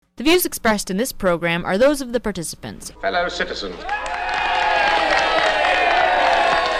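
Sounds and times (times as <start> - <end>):
speech: 0.2 - 4.1
crowd cheering: 3.1 - 6.7.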